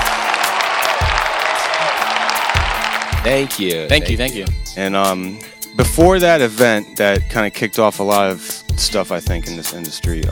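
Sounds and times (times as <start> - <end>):
round of applause: 0.0 - 3.6
speech: 3.2 - 10.3.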